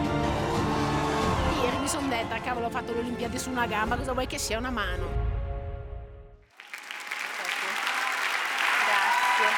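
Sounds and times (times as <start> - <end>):
audience applause: 0.1 - 2.7, 6.5 - 9.5
speech: 2.2 - 5.2.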